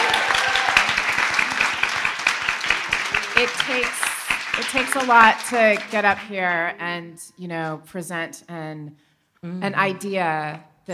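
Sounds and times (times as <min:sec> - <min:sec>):
crowd applauding: 0:00.0 - 0:06.6
speech: 0:03.4 - 0:04.0, 0:04.6 - 0:10.9.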